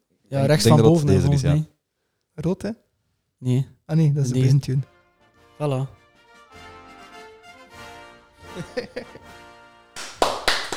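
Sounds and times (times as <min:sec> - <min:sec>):
speech: 0:00.3 - 0:01.7, 0:02.4 - 0:02.8, 0:03.4 - 0:04.9, 0:05.6 - 0:06.6, 0:08.6 - 0:09.4
laughter: 0:08.4 - 0:09.4
crowd enthusiastic applause: 0:10.0 - 0:10.7.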